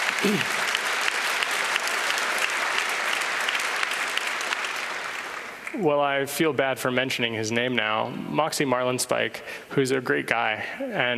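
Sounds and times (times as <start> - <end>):
audience applause: 0.0 - 5.9
speech: 0.2 - 0.6, 5.8 - 11.1.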